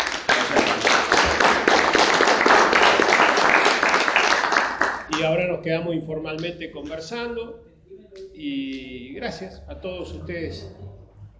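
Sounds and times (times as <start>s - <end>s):
audience applause: 0.0s - 5.1s
speech: 5.2s - 7.7s, 8.4s - 10.9s.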